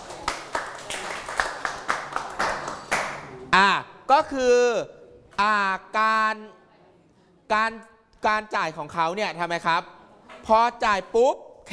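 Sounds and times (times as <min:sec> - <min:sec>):
classroom clapping for a classmate: 0:00.0 - 0:03.5
speech: 0:03.6 - 0:06.6, 0:07.5 - 0:11.7.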